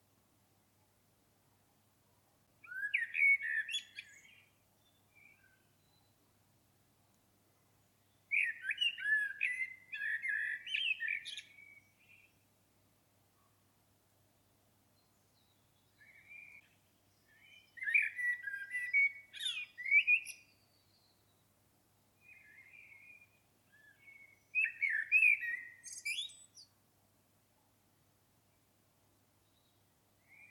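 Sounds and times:
common blackbird singing warbles: 2.6s - 6.2s, 8.0s - 12.4s, 15.0s - 21.5s, 22.2s - 26.7s.

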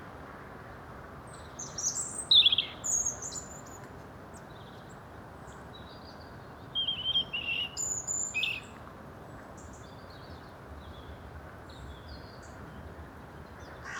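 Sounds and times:
European robin singing: 1.8s - 3.3s, 6.8s - 8.7s.

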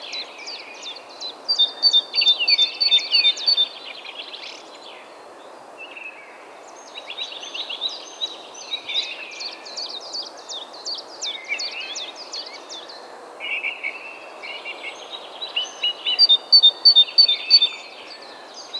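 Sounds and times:
great tit calling: 1.5s - 3.7s, 15.6s - 17.8s.

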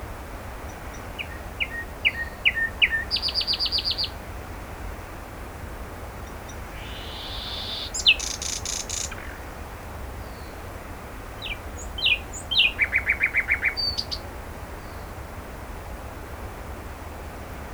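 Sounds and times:
low hiss: 0.0s - 17.7s
common nightingale singing: 0.7s - 4.2s, 6.2s - 9.5s, 11.4s - 14.2s.

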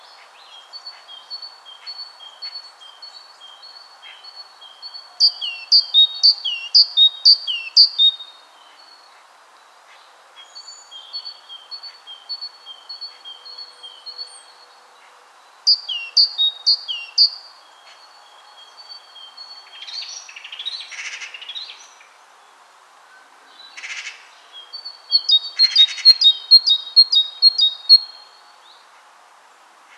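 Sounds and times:
great tit calling: 5.2s - 8.2s, 15.7s - 18.0s, 24.8s - 28.2s.

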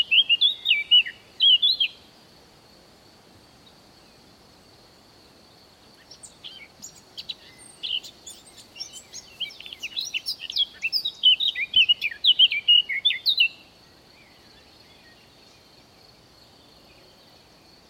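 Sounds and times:
Eurasian blackcap Sylvia atricapilla song: 0.0s - 2.1s, 5.8s - 15.7s.

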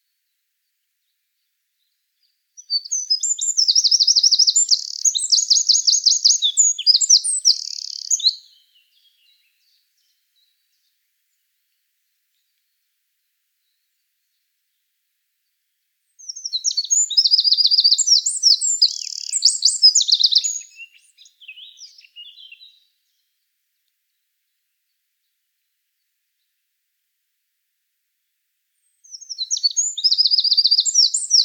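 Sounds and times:
Eurasian wren trilling song: 2.6s - 9.4s, 16.2s - 22.9s, 28.8s - 31.4s.

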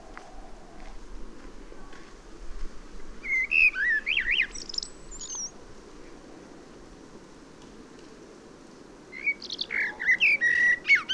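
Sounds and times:
common blackbird Turdus merula singing: 3.2s - 5.6s, 9.1s - 11.1s.

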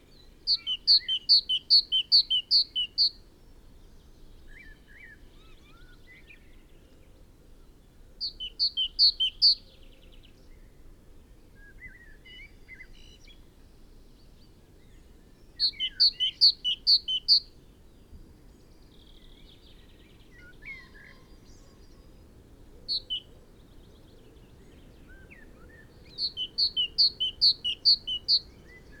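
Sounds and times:
great tit singing: 0.5s - 3.2s, 8.2s - 9.6s, 15.6s - 17.4s, 22.9s - 23.3s, 26.0s - 28.5s.

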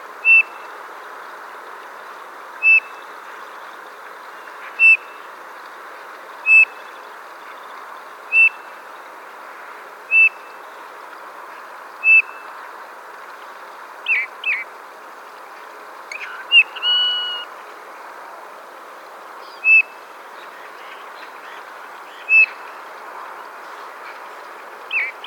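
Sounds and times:
Eurasian bullfinch Pyrrhula pyrrhula piping call: 0.2s - 0.7s, 2.6s - 3.0s, 4.6s - 5.2s, 6.4s - 6.8s, 8.3s - 8.7s, 10.1s - 10.6s, 12.0s - 12.5s, 16.1s - 17.5s, 19.5s - 20.0s.

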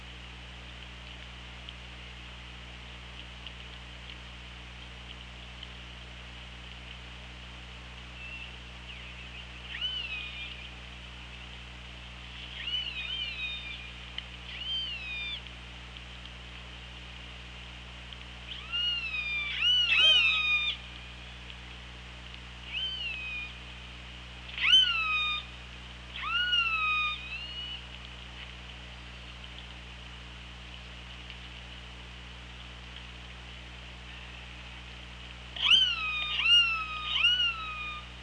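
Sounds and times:
constant low underwater hum: 0.0s - 38.2s
killer whale pulsed calls: 12.5s - 13.9s, 18.5s - 21.0s, 22.7s - 23.6s, 24.5s - 25.5s, 26.1s - 27.9s, 35.6s - 38.1s.

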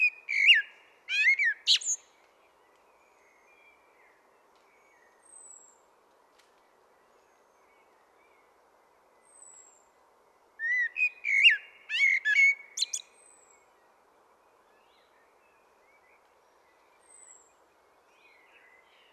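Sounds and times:
common blackbird Turdus merula singing: 0.0s - 2.0s, 10.6s - 13.4s.

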